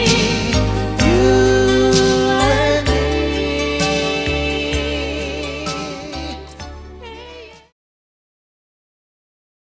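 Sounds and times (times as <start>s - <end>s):
ballad: 0.0s - 7.8s.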